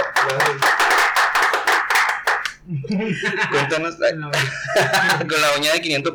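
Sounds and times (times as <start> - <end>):
hand clapping to welcome a guest: 0.0 - 2.6
speech: 0.2 - 0.8, 2.7 - 6.1
laughter: 2.7 - 5.6.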